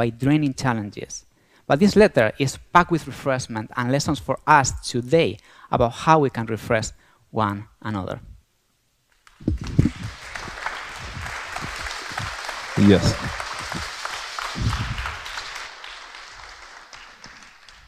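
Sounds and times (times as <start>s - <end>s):
speech: 0.0s - 8.3s, 9.4s - 9.9s, 12.8s - 13.9s
audience clapping: 9.1s - 17.8s.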